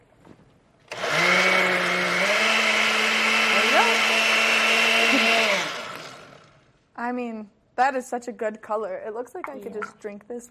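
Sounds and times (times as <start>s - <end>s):
blender blending a drink: 0.9s - 6.6s
speech: 7.1s - 10.4s.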